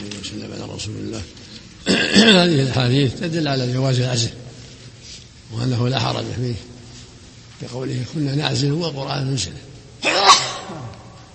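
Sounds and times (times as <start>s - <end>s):
speech: 0.4s - 4.4s, 5.5s - 6.7s, 7.6s - 10.4s
sneeze: 10.0s - 11.0s.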